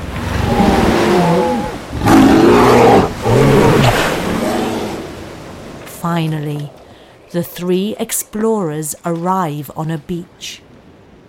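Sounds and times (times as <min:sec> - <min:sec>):
two dinosaurs roaring while fighting: 0:00.1 - 0:05.2
speech: 0:06.2 - 0:10.7.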